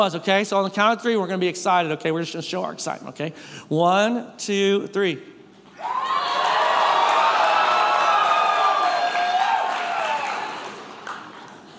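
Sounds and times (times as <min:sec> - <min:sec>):
speech: 0:00.0 - 0:06.0
audience cheering and whooping: 0:05.7 - 0:11.5.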